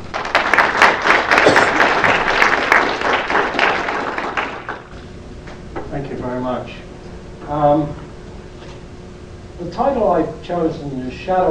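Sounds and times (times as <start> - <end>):
audience applause welcoming a guest speaker to a lecture: 0.0 - 4.9
speech: 9.8 - 11.4.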